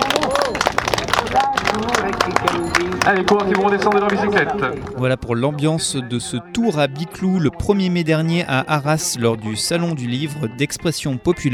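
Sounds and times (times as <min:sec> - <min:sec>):
crowd applauding race riders: 0:00.0 - 0:05.0
speech: 0:03.0 - 0:11.5.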